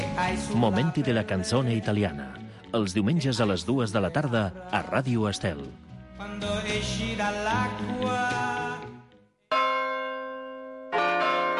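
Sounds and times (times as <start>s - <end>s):
speech: 0.2s - 8.5s
church bell ringing: 9.5s - 11.5s.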